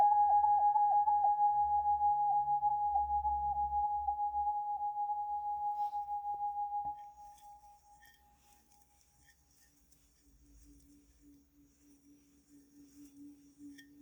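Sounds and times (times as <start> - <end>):
hammered matte natural seven-metal Tibetan bowl, note C sharp: 0.0 - 8.5.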